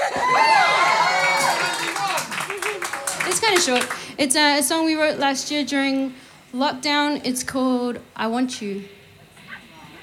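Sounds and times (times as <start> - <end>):
audience cheering: 0.0 - 3.4
audience applause: 0.0 - 4.1
speech: 3.6 - 9.0.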